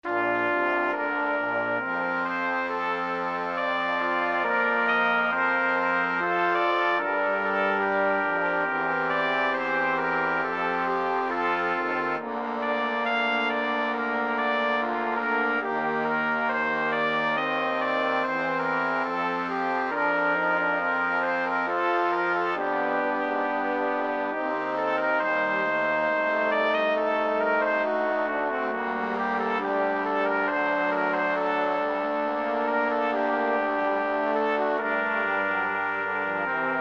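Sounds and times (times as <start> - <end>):
brass quintet: 0.0 - 36.7.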